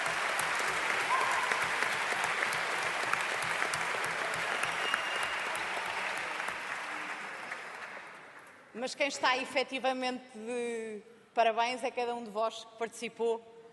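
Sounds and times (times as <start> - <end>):
audience applause: 0.0 - 8.5
speech: 8.8 - 13.5.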